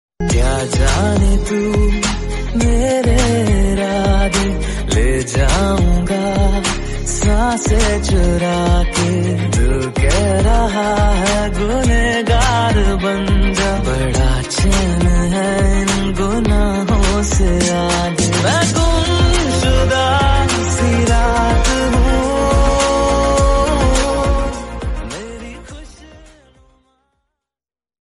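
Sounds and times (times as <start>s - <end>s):
romantic Bollywood song: 0.2s - 27.0s.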